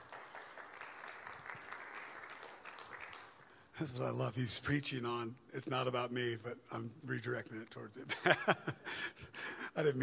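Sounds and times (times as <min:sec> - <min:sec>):
audience applause: 0:00.0 - 0:03.6
speech: 0:03.8 - 0:09.2, 0:09.8 - 0:10.0
laughter: 0:08.1 - 0:09.4.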